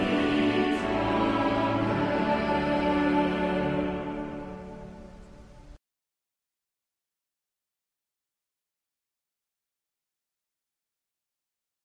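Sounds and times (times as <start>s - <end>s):
choir singing: 0.0s - 5.2s.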